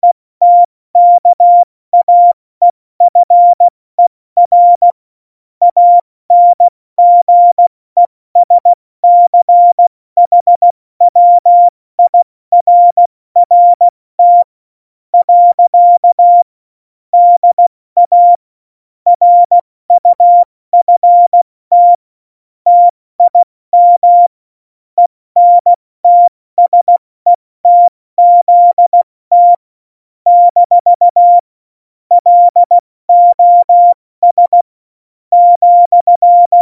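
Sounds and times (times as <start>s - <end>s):
CW Morse code beeps: 0.0s - 2.4s, 3.0s - 3.7s, 4.4s - 5.0s, 5.6s - 7.6s, 8.4s - 14.5s, 15.2s - 16.5s, 17.2s - 18.4s, 19.1s - 22.0s, 22.7s - 24.3s, 25.0s - 29.6s, 30.3s - 31.5s, 32.1s - 34.7s, 35.3s - 36.6s.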